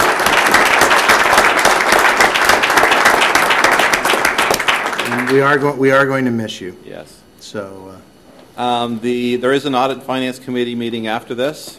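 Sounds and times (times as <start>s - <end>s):
round of applause: 0.0s - 5.7s
speech: 5.3s - 11.7s.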